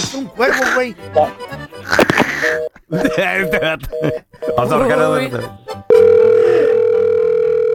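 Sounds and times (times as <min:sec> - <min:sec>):
speech: 0:00.1 - 0:01.5, 0:02.5 - 0:05.6
telephone dial tone: 0:05.9 - 0:07.7.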